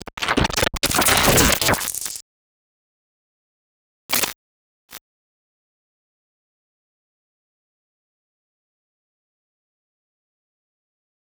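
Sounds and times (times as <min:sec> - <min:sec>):
glitch noise: 0:00.0 - 0:02.2, 0:04.1 - 0:04.4.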